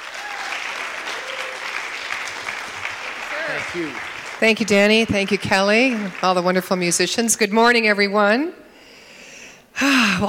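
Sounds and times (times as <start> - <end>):
audience applause at an Edmonton CSL gathering: 0.0 - 7.1
speech: 3.6 - 8.6, 9.8 - 10.2.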